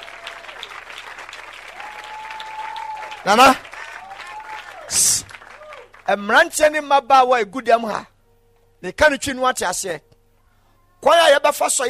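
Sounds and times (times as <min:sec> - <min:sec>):
audience clapping at a church service: 0:00.0 - 0:06.3
speech: 0:03.2 - 0:03.6, 0:04.9 - 0:05.3, 0:06.1 - 0:08.1, 0:08.8 - 0:10.1, 0:11.0 - 0:11.8.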